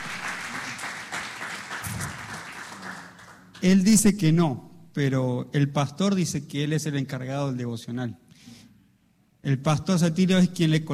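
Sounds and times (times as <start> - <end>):
audience applause: 0.0 - 3.6
speech: 3.6 - 8.2, 9.4 - 10.9.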